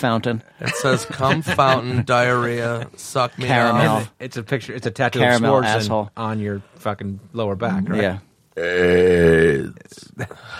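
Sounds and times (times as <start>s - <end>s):
speech: 0.0s - 10.5s
laughter: 0.6s - 4.0s
person burping: 8.6s - 9.6s.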